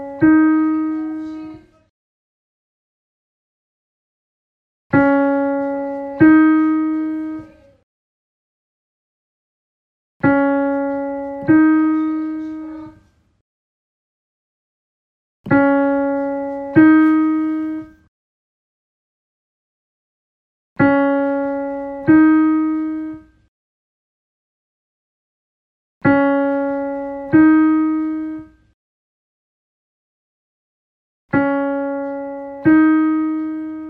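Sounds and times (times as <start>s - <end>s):
piano: 0.0s - 1.9s, 4.9s - 7.8s, 10.2s - 13.4s, 15.5s - 18.1s, 20.8s - 23.5s, 26.0s - 28.8s, 31.3s - 33.8s.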